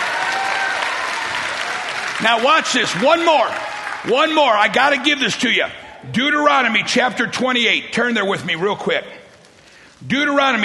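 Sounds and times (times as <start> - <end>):
audience clapping: 0.0 - 5.2
speech: 2.2 - 9.2, 10.0 - 10.6.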